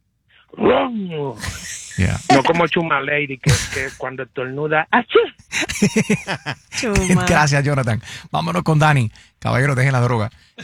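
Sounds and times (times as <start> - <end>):
speech: 0.5 - 10.6
laughter: 1.4 - 2.8, 3.5 - 4.0, 5.4 - 7.5
voice imitating a rumbling truck muffler: 1.4 - 2.8, 3.5 - 4.0.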